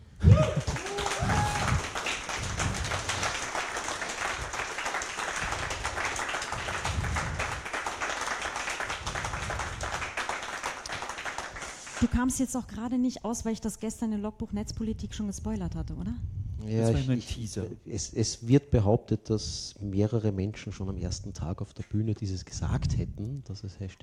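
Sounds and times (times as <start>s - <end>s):
frenetic applause: 0.2s - 12.1s
speech: 12.0s - 24.0s.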